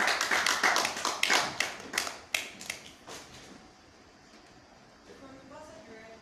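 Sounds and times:
audience clapping: 0:00.0 - 0:03.0.

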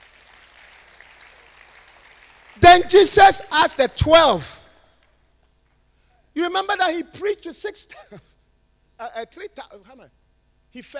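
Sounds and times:
audience clapping: 0:00.0 - 0:03.2
speech: 0:02.6 - 0:04.6, 0:06.6 - 0:08.4, 0:09.0 - 0:10.9.

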